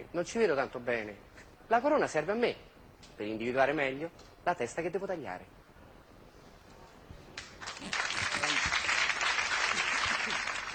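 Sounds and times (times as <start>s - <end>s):
speech: 0.0s - 5.6s
audience applause: 7.6s - 10.7s.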